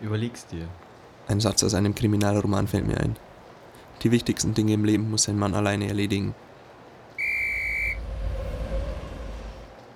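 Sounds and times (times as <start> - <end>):
speech: 0.0 - 3.3, 4.0 - 6.5
train whistle as train arrives: 7.2 - 9.4
low rumble of the moving train: 7.2 - 9.9.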